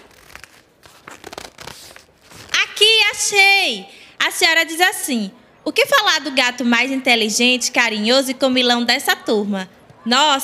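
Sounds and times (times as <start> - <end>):
book pages being turned: 0.0 - 2.6
speech: 3.2 - 10.4.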